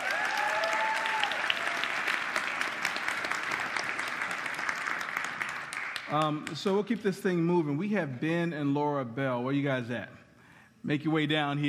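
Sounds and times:
audience applause: 0:00.0 - 0:06.6
speech: 0:06.1 - 0:10.2, 0:10.8 - 0:11.6.

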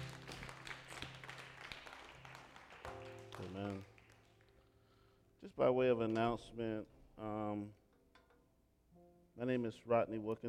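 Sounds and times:
audience hand clapping: 0:00.0 - 0:04.7
speech: 0:03.4 - 0:04.0, 0:05.4 - 0:07.8, 0:09.4 - 0:10.4.

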